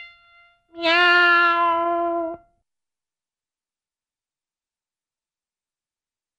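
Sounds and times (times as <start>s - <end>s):
cartoon cat meows and yowls: 0.8s - 2.4s.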